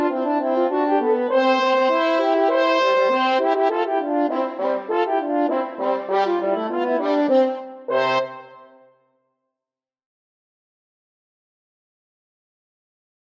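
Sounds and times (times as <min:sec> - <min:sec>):
french horn duet: 0:00.0 - 0:08.7.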